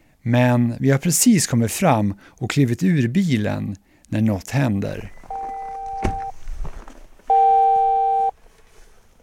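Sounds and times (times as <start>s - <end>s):
speech: 0.2s - 5.2s
radio individual call alert tone: 5.0s - 6.3s, 7.3s - 8.3s.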